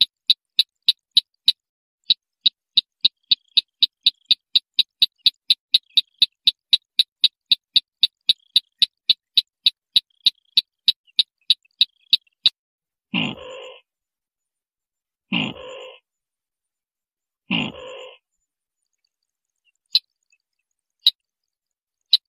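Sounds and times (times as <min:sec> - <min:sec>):
white-breasted waterhen train of sharp clicks: 0:00.0 - 0:12.5
white-breasted waterhen raspy croaks: 0:00.0 - 0:13.9, 0:15.3 - 0:16.0, 0:17.4 - 0:18.2, 0:19.6 - 0:20.4.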